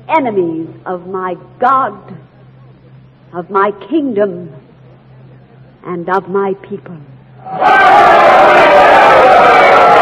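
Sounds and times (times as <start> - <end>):
speech: 0.1 - 2.3, 3.3 - 4.6, 5.8 - 7.8, 8.6 - 10.0
large crowd cheering and roaring: 7.4 - 10.0.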